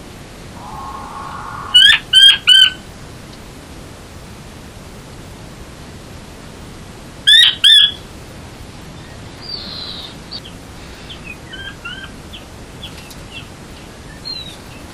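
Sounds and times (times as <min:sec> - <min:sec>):
Chinese quail calling: 0:00.6 - 0:02.7.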